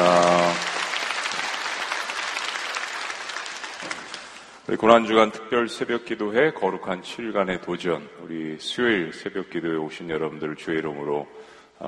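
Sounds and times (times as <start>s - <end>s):
audience applause: 0.0s - 4.6s
speech: 4.7s - 11.8s.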